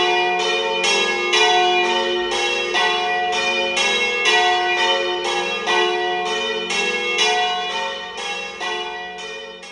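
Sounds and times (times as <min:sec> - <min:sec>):
bells ringing during puja: 0:00.0 - 0:09.6.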